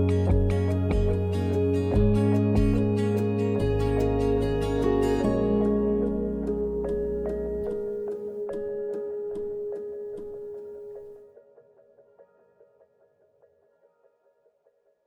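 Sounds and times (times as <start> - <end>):
acoustic music: 0.0 - 11.2.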